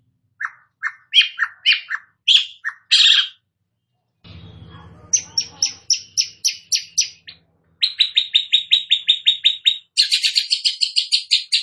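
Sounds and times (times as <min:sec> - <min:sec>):
Long-tailed shrike song of whistled phrases and buzzy trills: 0:00.4 - 0:03.4, 0:04.3 - 0:11.6
low rumbling noise: 0:04.2 - 0:08.1.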